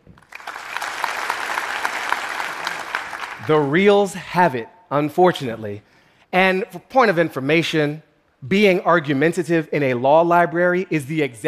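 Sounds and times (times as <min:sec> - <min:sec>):
audience applause: 0:00.2 - 0:03.7
speech: 0:03.5 - 0:11.4.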